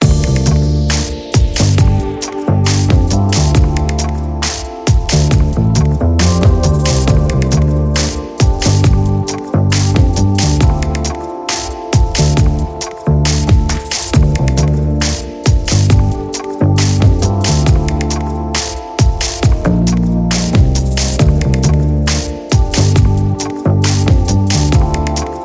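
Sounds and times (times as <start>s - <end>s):
chill out hip hop loop: 0.0s - 25.4s.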